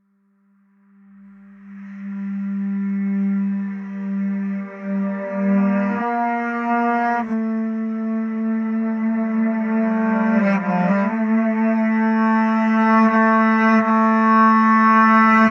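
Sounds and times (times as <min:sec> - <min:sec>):
baritone saxophone with effect: 0:01.7 - 0:15.4.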